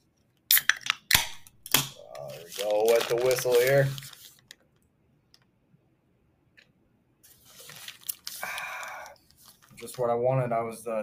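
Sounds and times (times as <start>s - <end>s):
cold beer can being cracked open: 0.5s - 3.4s
speech: 2.6s - 4.1s, 9.9s - 11.0s.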